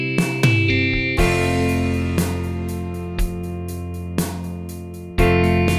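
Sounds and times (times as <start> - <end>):
orchestral rock ballad: 0.2 - 5.7.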